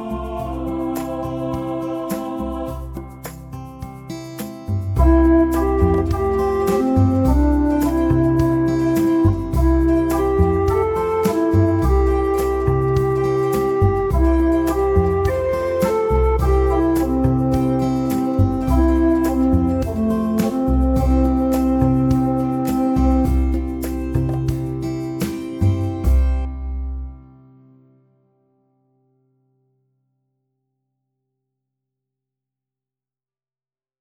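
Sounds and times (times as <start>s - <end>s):
backing music: 0.0s - 27.1s.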